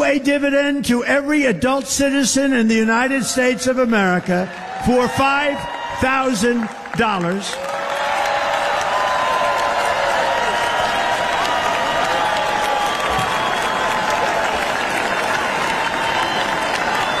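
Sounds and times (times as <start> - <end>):
speech: 0.1 - 7.7
crowd applauding and cheering: 4.0 - 17.1.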